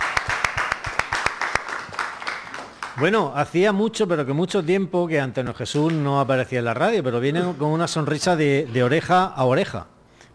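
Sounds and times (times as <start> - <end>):
applause: 0.0 - 3.2
speech: 3.0 - 9.9.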